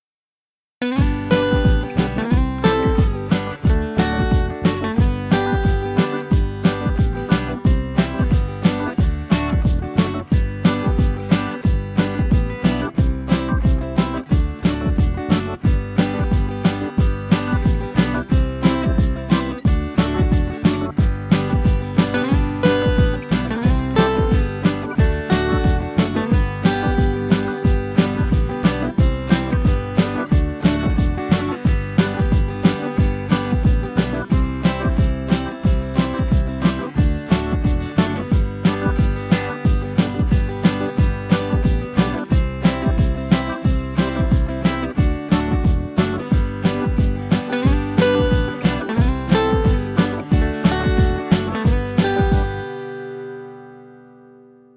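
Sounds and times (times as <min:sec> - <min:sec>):
instrumental music: 0:00.8 - 0:54.7.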